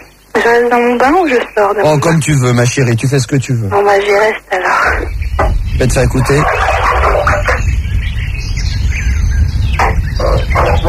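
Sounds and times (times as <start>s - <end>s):
speech: 0.4s - 6.7s
rumbling thunderstorm: 4.7s - 10.8s.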